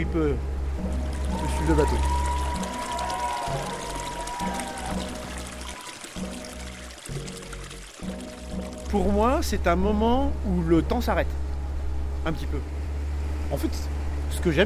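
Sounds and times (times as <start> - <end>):
speech: 0.0 - 2.2, 8.9 - 11.4, 12.2 - 12.8, 13.5 - 14.6
muscadet wine poured steadily into water: 1.0 - 9.0.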